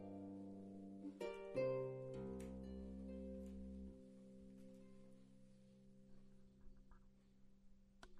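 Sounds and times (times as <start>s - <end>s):
clarsach harp with walnut strings: 0.0s - 6.2s.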